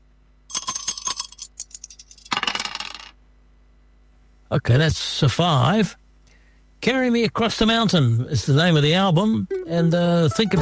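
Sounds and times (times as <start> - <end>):
dice being thrown and rolling: 0.5 - 3.2
speech: 4.5 - 6.0, 6.8 - 10.6.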